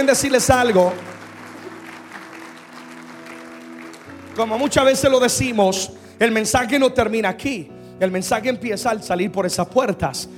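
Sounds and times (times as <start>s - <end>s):
speech: 0.0s - 1.2s, 4.4s - 10.3s
loud audience applause: 0.0s - 4.9s.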